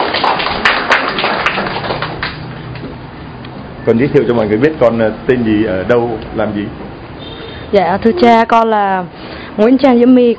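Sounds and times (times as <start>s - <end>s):
crowd applauding: 0.0s - 2.9s
speech: 3.9s - 6.8s, 7.7s - 10.3s.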